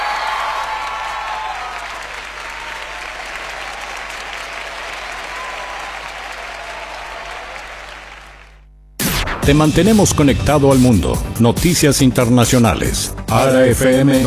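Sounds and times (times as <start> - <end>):
audience applause for the musicians: 0.0 - 8.6
speech: 9.5 - 14.2.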